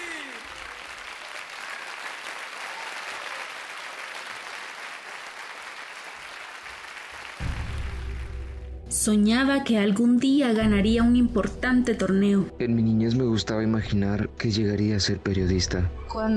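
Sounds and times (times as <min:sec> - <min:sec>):
audience applause: 0:00.0 - 0:08.7
speech: 0:09.0 - 0:16.3.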